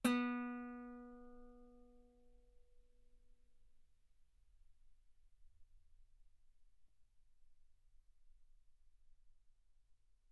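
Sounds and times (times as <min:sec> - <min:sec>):
guitar note B3: 0:00.1 - 0:01.5.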